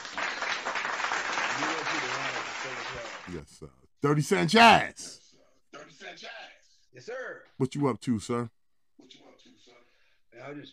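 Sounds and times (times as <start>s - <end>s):
round of applause from a gathered group: 0.0s - 3.4s, 4.5s - 4.8s
speech: 3.3s - 5.2s, 7.0s - 8.6s, 10.4s - 10.7s.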